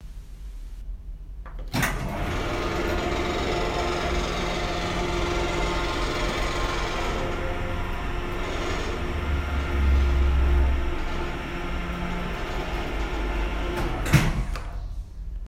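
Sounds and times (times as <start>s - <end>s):
lift: 1.4s - 15.1s.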